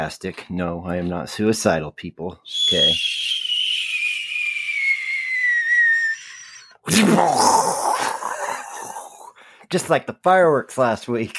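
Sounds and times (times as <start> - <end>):
speech: 0.0 - 3.4, 6.9 - 7.9, 9.7 - 11.3
cartoon-style bomb drop falling whistle: 2.5 - 6.8.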